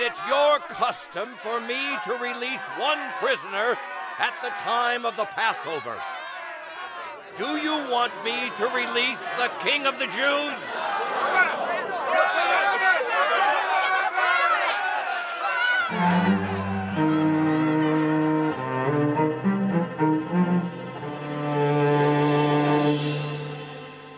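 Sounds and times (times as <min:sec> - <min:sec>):
speech: 0:00.0 - 0:06.2, 0:07.4 - 0:10.8
angry crowd shouting: 0:00.0 - 0:18.6
orchestral music: 0:15.9 - 0:24.1.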